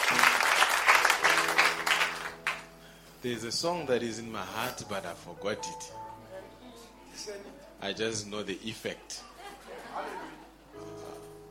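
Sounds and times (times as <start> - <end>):
round of applause from a group: 0.0 - 2.7
speech: 3.2 - 6.1, 7.2 - 9.2
laughter: 9.2 - 11.1.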